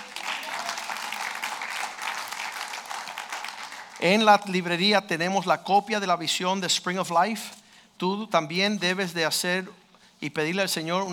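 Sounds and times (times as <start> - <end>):
audience applause: 0.0 - 4.1
speech: 4.0 - 11.1.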